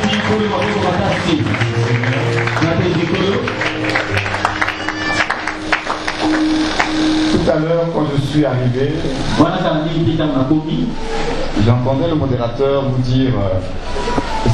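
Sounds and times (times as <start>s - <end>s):
congregation rhythmic clapping at a church service: 0.0s - 7.7s
sustained musical tones: 0.0s - 14.5s
speech: 0.3s - 2.2s, 7.4s - 14.2s.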